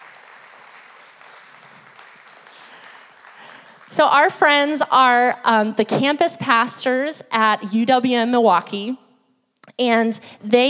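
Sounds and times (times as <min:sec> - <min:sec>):
audience applause: 0:00.0 - 0:04.0
speech: 0:03.9 - 0:09.0, 0:09.8 - 0:10.6.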